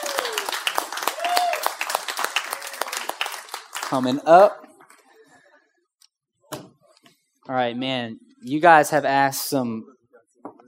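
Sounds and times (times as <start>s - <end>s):
audience applause for a panel: 0.0s - 4.2s
speech: 3.9s - 4.6s, 7.5s - 10.0s.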